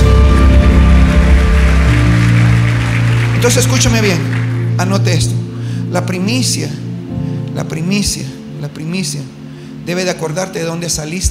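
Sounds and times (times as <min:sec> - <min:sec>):
crowd clapping: 0:00.0 - 0:05.4
loud sustained musical tones: 0:00.0 - 0:10.5
speech: 0:03.4 - 0:06.8, 0:07.6 - 0:11.2.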